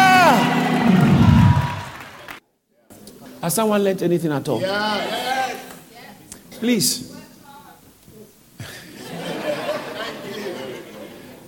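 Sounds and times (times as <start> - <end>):
audience shouting hallelujah: 0.0 - 2.4
speech: 3.4 - 5.3, 6.6 - 7.2
laughter: 8.6 - 11.4.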